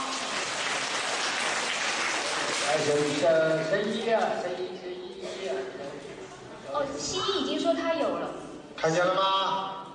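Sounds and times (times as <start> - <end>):
audience applause: 0.0 - 3.3
speech: 2.7 - 9.8.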